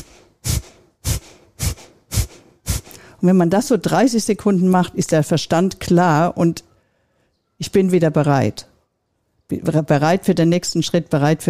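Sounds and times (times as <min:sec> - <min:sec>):
forceful nasal exhalations in Kapalabhati breathing: 0:00.0 - 0:03.2
speech: 0:03.2 - 0:06.7, 0:07.6 - 0:08.7, 0:09.5 - 0:11.4.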